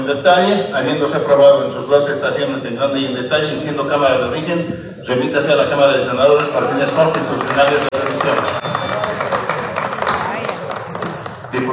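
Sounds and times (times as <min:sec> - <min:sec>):
speech: 0:00.1 - 0:08.7
applause in parliament chamber: 0:06.4 - 0:11.7.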